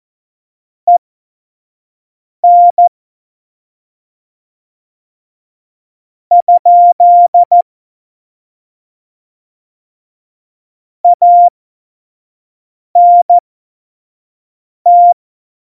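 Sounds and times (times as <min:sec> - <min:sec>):
CW Morse code beeps: 0:02.4 - 0:02.9, 0:06.3 - 0:07.6, 0:11.1 - 0:11.5, 0:13.0 - 0:13.4, 0:14.9 - 0:15.2.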